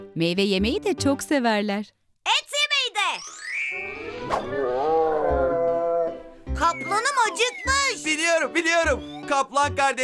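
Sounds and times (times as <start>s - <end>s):
speech: 0.2s - 2.5s, 3.2s - 5.0s, 6.6s - 10.0s
bear moaning call: 4.4s - 7.9s.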